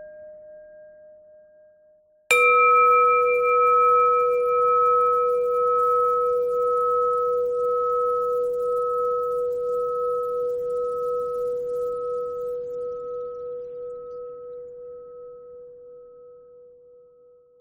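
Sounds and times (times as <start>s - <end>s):
bell: 2.3s - 14.0s.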